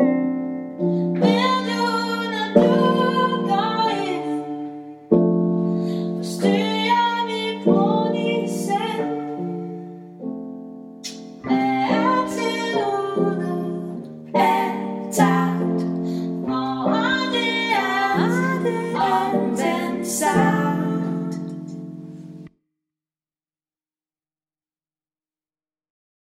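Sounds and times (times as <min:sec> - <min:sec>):
person singing a new Danish song: 0:00.8 - 0:05.3, 0:06.0 - 0:10.1, 0:11.1 - 0:21.9.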